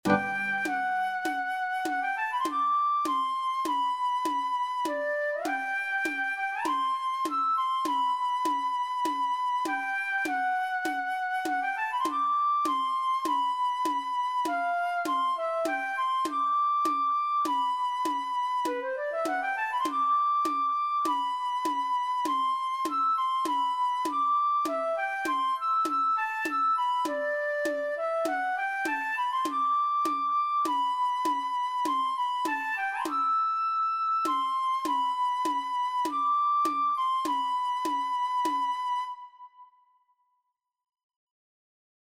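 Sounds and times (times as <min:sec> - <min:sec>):
flute: 0:00.0 - 0:40.2.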